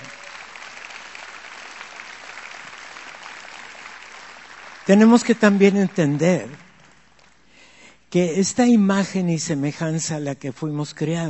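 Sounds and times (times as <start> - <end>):
applause: 0.0 - 7.7
speech: 4.9 - 6.7, 8.1 - 11.2.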